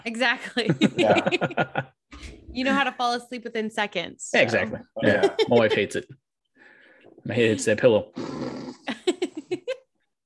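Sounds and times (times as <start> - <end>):
speech: 0.0 - 6.2, 7.2 - 8.7
laughter: 0.6 - 2.0, 5.0 - 6.0
person imitating loud snoring: 8.2 - 8.9.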